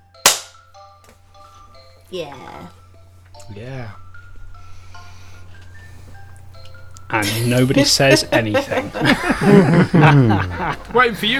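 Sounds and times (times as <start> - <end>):
hand clap: 0.2 - 0.6
speech: 2.1 - 2.8, 3.5 - 4.0, 7.1 - 11.3
laughter: 7.1 - 11.3.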